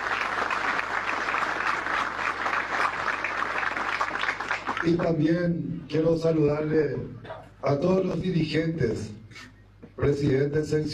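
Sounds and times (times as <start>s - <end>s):
crowd applause for candidates: 0.0s - 5.1s
speech: 4.8s - 10.9s.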